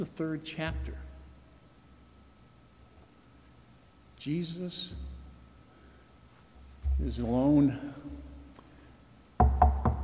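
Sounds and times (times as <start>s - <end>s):
speech: 0.0s - 1.0s, 4.2s - 5.1s, 7.0s - 8.2s
faint low hum: 0.0s - 10.0s
knocking on a door: 9.4s - 10.0s.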